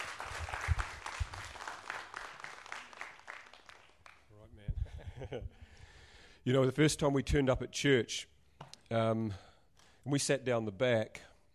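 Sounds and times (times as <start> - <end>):
audience applause welcoming a speaker onto the stage: 0.0 - 4.3
speech: 5.2 - 5.8, 6.4 - 8.3, 8.9 - 11.3.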